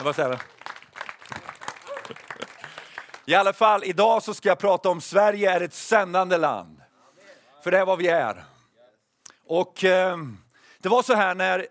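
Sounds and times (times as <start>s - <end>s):
speech: 0.0s - 0.6s, 3.2s - 6.8s, 7.6s - 8.5s, 9.5s - 11.7s
audience applause: 0.0s - 3.6s.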